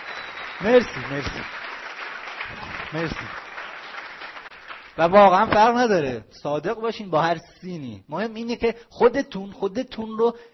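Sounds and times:
applause: 0.0s - 5.6s
speech: 0.6s - 1.6s, 2.5s - 3.4s, 5.0s - 10.5s.

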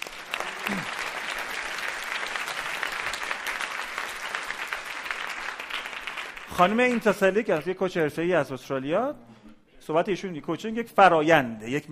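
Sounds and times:
coaching training session participants clapping: 0.0s - 7.3s
speech: 6.6s - 9.3s, 9.9s - 11.9s.

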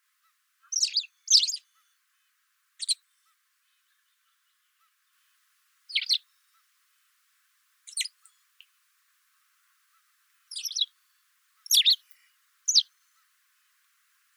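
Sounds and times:
white wagtail calls: 0.7s - 1.6s, 2.8s - 3.0s, 5.9s - 6.2s, 7.9s - 8.2s, 10.5s - 10.9s, 11.7s - 13.2s.

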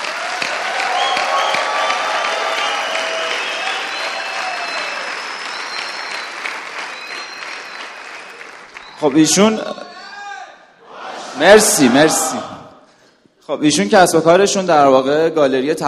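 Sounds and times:
audience applause: 0.0s - 9.6s
audience cheering: 0.0s - 12.7s
speech: 9.0s - 9.8s, 11.4s - 12.5s, 13.5s - 15.8s.

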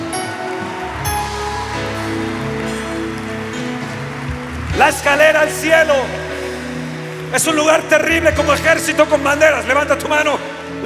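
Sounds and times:
audience applauding: 0.0s - 9.5s
speech: 4.8s - 6.2s, 7.3s - 10.8s.

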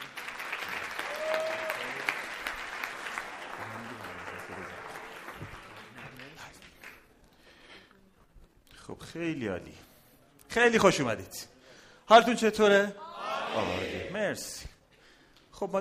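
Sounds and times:
audience applause: 0.0s - 7.0s
speech: 9.1s - 9.9s, 10.6s - 11.5s, 12.1s - 14.7s, 15.6s - 15.7s.

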